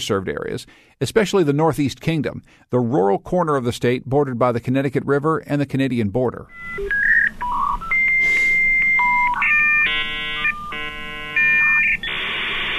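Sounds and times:
speech: 0.0 - 7.2
dial-up modem connecting tones: 6.5 - 12.7.

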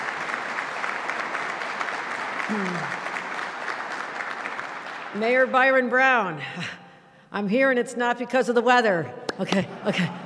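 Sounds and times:
round of applause: 0.0 - 5.8
speech: 2.5 - 3.1, 5.2 - 10.2.

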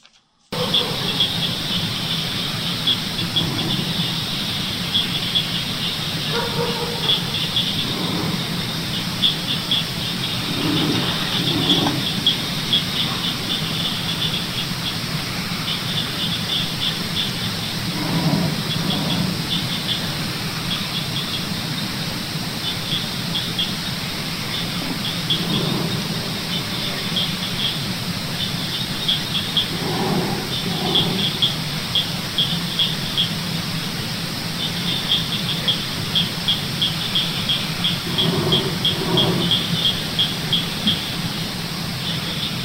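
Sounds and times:
dogs barking: 0.5 - 15.0, 15.6 - 21.8, 23.4 - 27.8, 28.5 - 32.0, 37.2 - 41.2
crickets: 0.5 - 42.6
frogs: 0.5 - 42.6
low growling sound: 7.1 - 9.3, 9.9 - 13.9, 17.3 - 20.5, 24.6 - 27.4, 29.5 - 31.6, 38.0 - 40.1.

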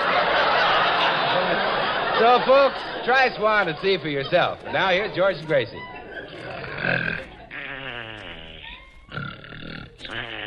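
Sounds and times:
laughter: 0.0 - 9.0
speech: 2.2 - 6.0, 6.8 - 7.3
voice imitating snoring: 6.4 - 10.4.

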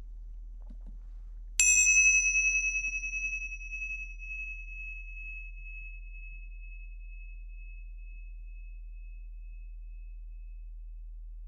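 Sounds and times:
hand cymbals struck and ringing: 1.6 - 5.6.

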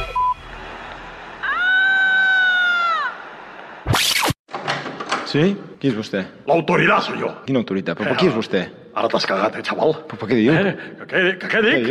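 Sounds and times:
woman's loud high-pitched scream: 1.4 - 3.2
speech: 5.3 - 11.8.

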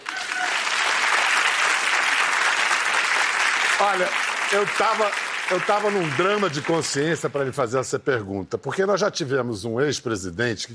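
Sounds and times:
applause: 0.0 - 7.6
speech: 3.8 - 10.7.

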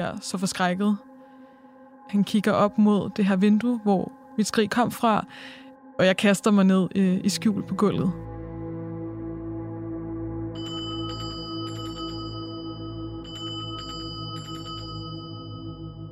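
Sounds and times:
speech: 0.0 - 1.1, 2.1 - 8.3
assembly bell ringing: 10.6 - 16.1.

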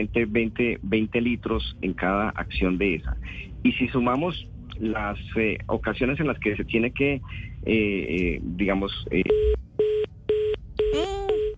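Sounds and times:
speech: 0.0 - 9.6
telephone tones as a call drops: 9.3 - 11.5.

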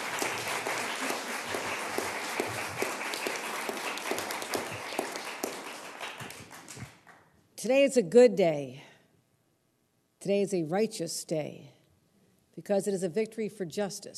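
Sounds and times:
applause: 0.0 - 7.4
speech: 7.6 - 8.8, 10.2 - 11.8, 12.6 - 14.1.

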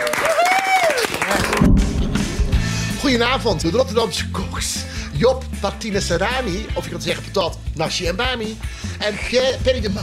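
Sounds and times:
studio audience applause: 0.0 - 2.4
speech: 3.1 - 10.0.

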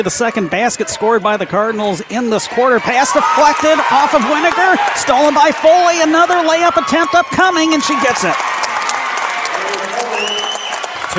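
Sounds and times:
speech: 0.0 - 8.6
basketball crowd cheering and voices: 0.0 - 11.1
basketball crowd applauding: 2.5 - 11.1.

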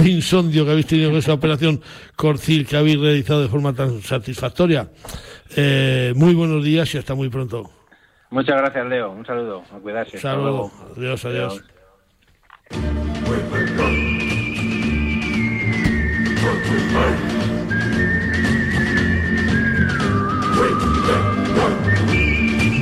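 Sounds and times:
speech: 0.0 - 11.7, 12.7 - 14.2, 16.4 - 17.5
theme tune with whistled melody and rhythmic backing: 12.7 - 22.8.

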